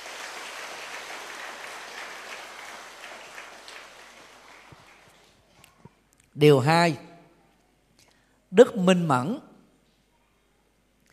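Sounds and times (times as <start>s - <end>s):
crowd applause: 0.0s - 5.5s
speech: 6.4s - 7.1s, 8.6s - 9.5s.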